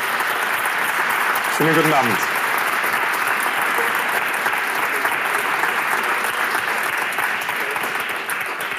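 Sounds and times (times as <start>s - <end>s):
full-house audience applause at a live evening event: 0.0s - 8.7s
speech: 1.6s - 2.3s.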